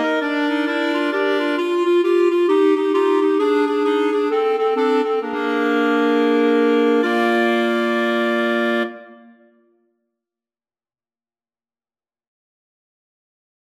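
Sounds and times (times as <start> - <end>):
clarinet quartet playing boogie: 0.0 - 9.1.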